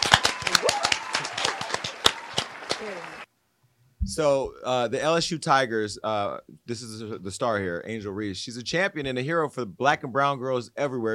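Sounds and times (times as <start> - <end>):
studio clapping: 0.0 - 3.3
speech: 4.1 - 11.1.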